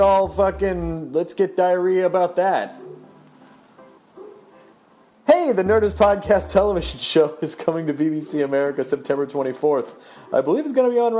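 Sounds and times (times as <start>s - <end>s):
speech: 0.0s - 2.8s, 5.4s - 11.1s
neighbor's dog barking: 2.8s - 3.2s, 4.2s - 4.7s
low steady hum: 5.7s - 7.0s.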